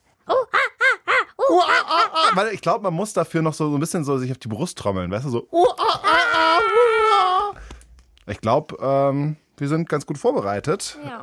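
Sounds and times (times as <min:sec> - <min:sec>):
person imitating a monkey call: 0:00.3 - 0:02.4, 0:05.6 - 0:07.5
speech: 0:01.5 - 0:07.0, 0:08.3 - 0:11.2.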